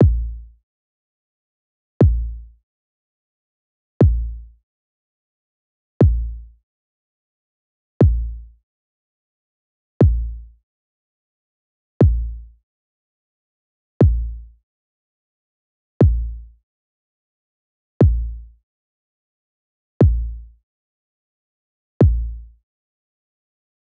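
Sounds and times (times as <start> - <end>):
kick drum: 0.0 - 0.2, 2.0 - 2.2, 4.0 - 4.2, 6.0 - 6.2, 8.0 - 8.2, 10.0 - 10.2, 12.0 - 12.2, 14.0 - 14.2, 16.0 - 16.2, 18.0 - 18.2, 20.0 - 20.2, 22.0 - 22.2.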